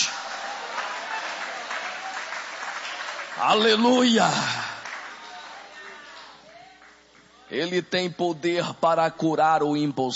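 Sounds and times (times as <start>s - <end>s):
audience applause: 0.0s - 7.0s
speech: 3.4s - 4.6s, 7.5s - 10.1s.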